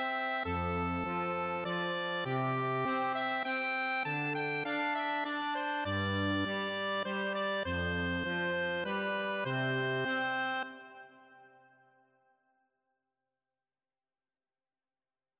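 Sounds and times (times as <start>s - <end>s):
accordion: 0.0s - 11.7s.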